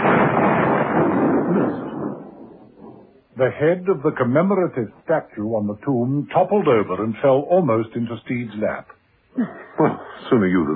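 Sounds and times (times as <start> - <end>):
explosion with a blinding splash: 0.0 - 2.3
speech: 3.4 - 10.7
laughter: 9.4 - 10.7.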